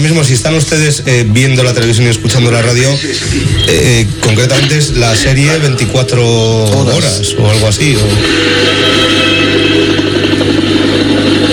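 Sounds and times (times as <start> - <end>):
speech: 0.0 - 9.2
helicopter: 8.2 - 11.5.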